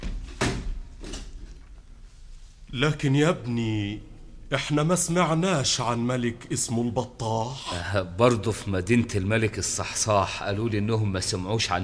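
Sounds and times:
door closing: 0.0s - 1.8s
speech: 2.7s - 11.8s.

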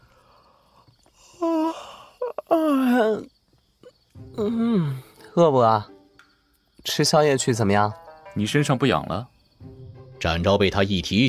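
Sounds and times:
yawn: 1.2s - 3.3s, 4.4s - 5.3s
speech: 2.5s - 3.3s, 4.4s - 5.9s, 6.8s - 9.3s, 10.2s - 11.2s.

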